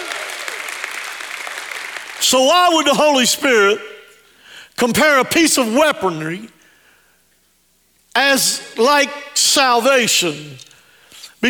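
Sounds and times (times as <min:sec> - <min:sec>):
crowd audience hand clapping: 0:00.0 - 0:02.4
speech: 0:02.2 - 0:03.9, 0:04.8 - 0:06.6, 0:08.2 - 0:10.7.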